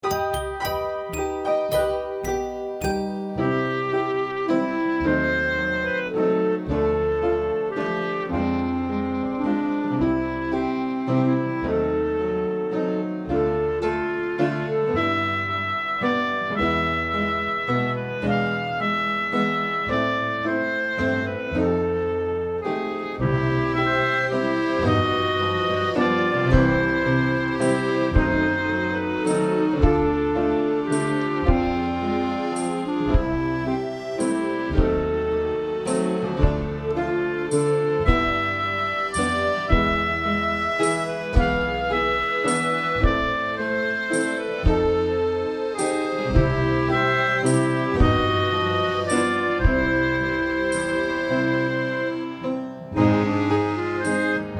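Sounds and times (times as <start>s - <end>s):
waltz music: 0.0s - 54.5s.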